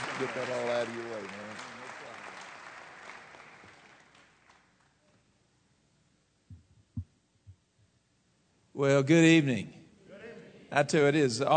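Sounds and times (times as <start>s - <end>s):
audience applause, hand clapping welcome: 0.0s - 4.8s
speech: 0.2s - 1.8s, 8.8s - 9.8s, 10.7s - 11.5s.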